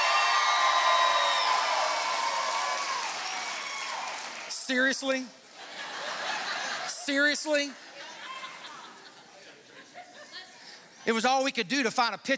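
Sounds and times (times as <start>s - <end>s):
audience hooting and hollering: 0.0s - 4.4s
audience clapping: 0.0s - 5.2s
speech: 4.7s - 5.4s, 7.1s - 7.9s, 11.0s - 12.3s
laughter: 5.5s - 10.9s.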